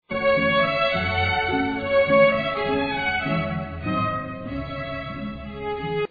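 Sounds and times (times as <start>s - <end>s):
waltz music: 0.1s - 6.0s.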